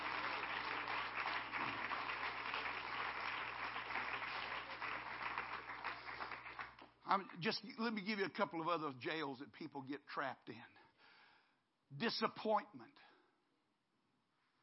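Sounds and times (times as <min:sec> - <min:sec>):
audience clapping: 0:00.0 - 0:07.6
speech: 0:07.1 - 0:10.7, 0:11.9 - 0:13.1.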